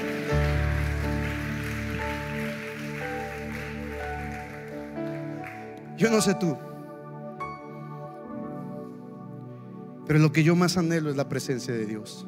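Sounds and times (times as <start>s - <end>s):
audience applauding loudly: 0.0s - 6.4s
speech: 6.0s - 6.7s, 10.1s - 12.2s.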